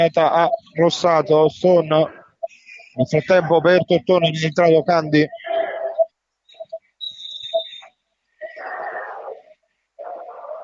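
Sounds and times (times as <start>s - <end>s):
speech: 0.0s - 2.2s, 3.0s - 5.4s
referee's whistle blown for a foul: 5.3s - 7.9s.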